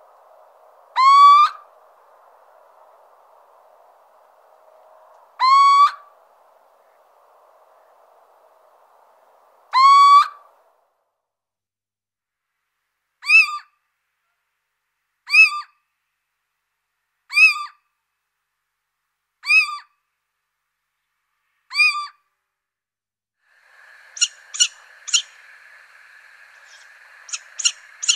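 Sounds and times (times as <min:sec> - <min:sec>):
little owl giving a rising whistle and sharp mewing notes: 0:01.0 - 0:01.6, 0:05.4 - 0:06.0, 0:09.7 - 0:10.4, 0:13.2 - 0:13.7, 0:15.3 - 0:15.7, 0:17.3 - 0:17.8, 0:19.4 - 0:19.9, 0:21.7 - 0:22.2, 0:24.1 - 0:25.6, 0:26.4 - 0:28.1.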